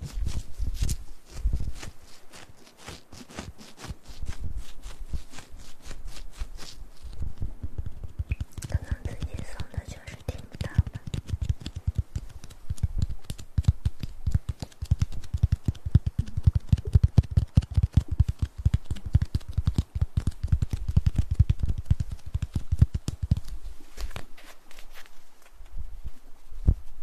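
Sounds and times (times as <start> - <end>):
ear massage: 0.0 - 27.0.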